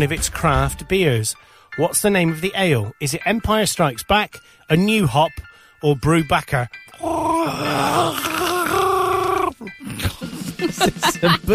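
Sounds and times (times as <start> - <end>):
speech: 0.0 - 8.3, 9.6 - 11.5
man choking on his coffee: 7.0 - 10.8
laughter: 10.2 - 11.5.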